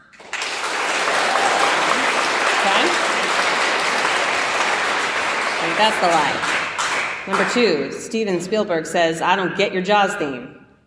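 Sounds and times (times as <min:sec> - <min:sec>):
audience applause: 0:00.0 - 0:07.6
speech: 0:05.8 - 0:06.6, 0:07.3 - 0:10.6.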